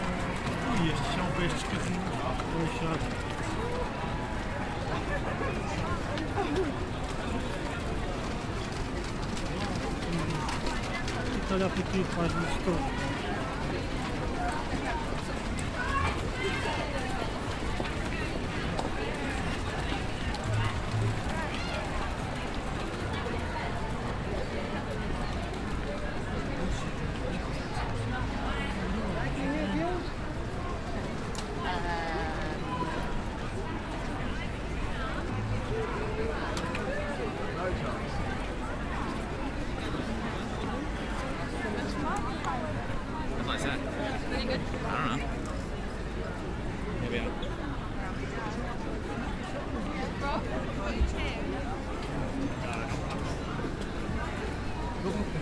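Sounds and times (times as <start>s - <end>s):
crowd of holiday shoppers and tourists chattering: 0.0s - 55.4s
speech: 0.8s - 3.7s, 4.9s - 7.5s, 11.3s - 13.1s.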